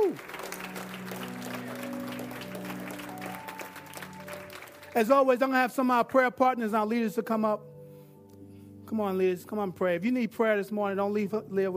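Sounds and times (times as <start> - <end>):
audience hand clapping: 0.0 - 5.2
speech: 5.0 - 7.7, 8.9 - 11.7.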